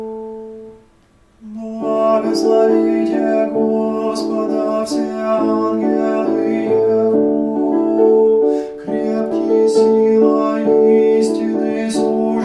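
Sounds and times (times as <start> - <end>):
tenor singing: 1.4 - 12.4.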